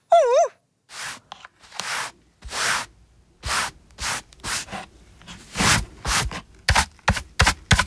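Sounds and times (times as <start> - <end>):
broom sweeping a library floor: 0.9 - 6.9.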